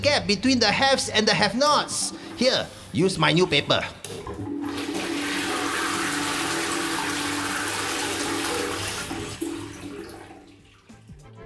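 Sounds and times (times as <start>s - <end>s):
speech: 0.0s - 4.5s
toilet flushing: 0.0s - 11.2s
toilet cistern gurgling refill: 1.9s - 3.0s, 3.8s - 11.0s.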